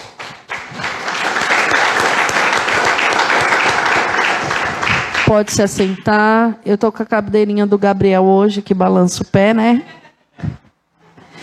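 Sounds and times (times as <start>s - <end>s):
audience applause: 0.0s - 6.0s
speech: 5.3s - 10.6s.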